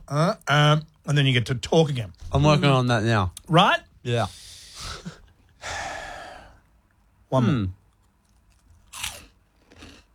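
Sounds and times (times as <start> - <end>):
speech: 0.1 - 5.8, 7.3 - 7.8
biting into cheese chips: 8.0 - 10.1.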